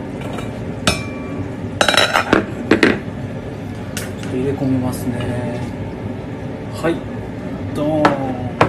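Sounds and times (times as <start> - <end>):
dishes and utensils clinking as food is served: 0.2 - 2.9
speech: 4.4 - 5.7, 6.8 - 7.1, 7.7 - 8.6.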